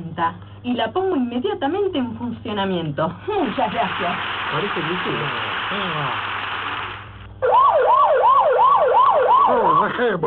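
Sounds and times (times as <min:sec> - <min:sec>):
speech: 0:00.0 - 0:06.3, 0:09.5 - 0:10.2
alarm siren: 0:07.4 - 0:10.2.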